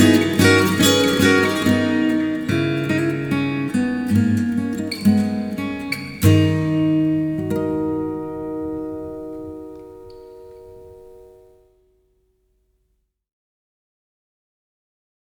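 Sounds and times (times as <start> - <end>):
instrumental music: 0.0 - 12.0.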